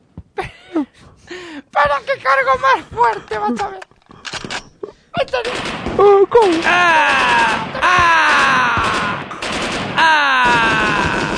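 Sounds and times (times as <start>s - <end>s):
speech: 0.8s - 3.9s, 5.2s - 8.4s
loud sustained gunfire volleys: 5.3s - 11.3s.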